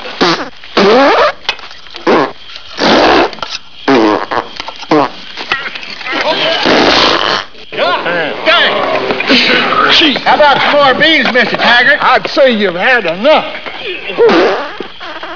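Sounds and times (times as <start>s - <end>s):
bean fart: 0.0s - 1.4s, 2.0s - 5.2s, 6.2s - 7.5s, 14.2s - 15.3s
laughter: 7.8s - 12.0s, 13.2s - 14.9s.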